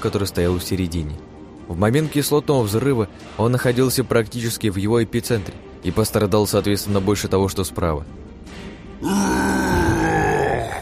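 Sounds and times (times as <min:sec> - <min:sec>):
speech: 0:00.0 - 0:09.5
troll roaring loudly: 0:09.0 - 0:10.8.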